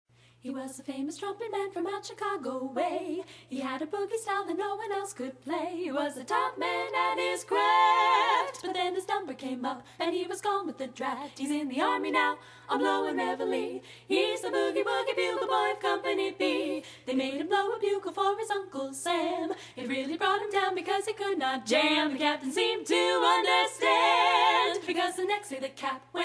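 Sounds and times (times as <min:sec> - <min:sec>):
a cappella singing: 0:00.4 - 0:26.2.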